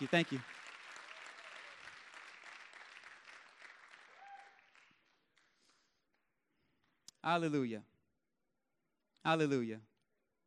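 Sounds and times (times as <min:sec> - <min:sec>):
speech: 0:00.0 - 0:00.6, 0:07.2 - 0:07.9, 0:09.2 - 0:09.9
crowd applause: 0:00.0 - 0:05.6.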